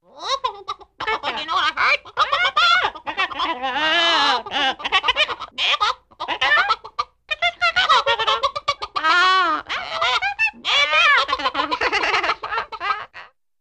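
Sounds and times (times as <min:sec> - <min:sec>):
chickens clucking: 0:00.2 - 0:13.3
people talking: 0:01.0 - 0:05.4, 0:06.4 - 0:13.0
people laughing: 0:11.0 - 0:13.3.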